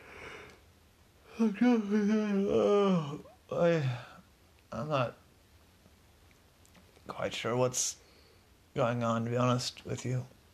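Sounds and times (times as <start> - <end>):
narrator voicing a big drawn-out yawn: 1.3 - 4.2
speech: 1.4 - 4.1, 4.7 - 5.2, 7.1 - 8.0, 8.8 - 10.4.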